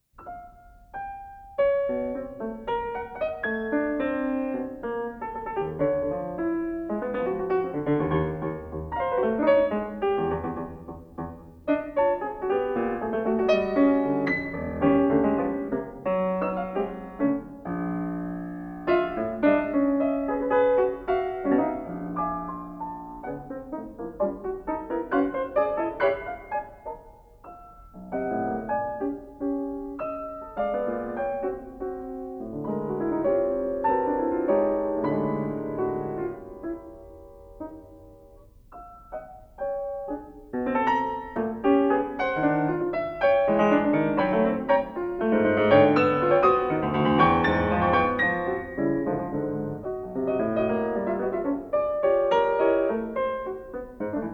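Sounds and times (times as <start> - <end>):
piano suite: 0.0 - 54.3.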